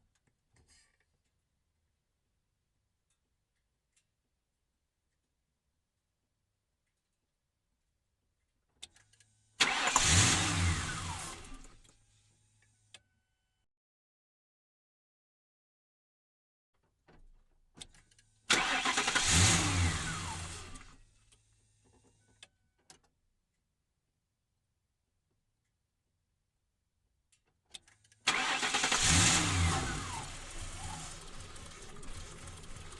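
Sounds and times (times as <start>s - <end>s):
Ford Crown Victoria engine idling and stalling: 9.6s - 11.9s, 18.0s - 21.1s, 28.0s - 32.9s.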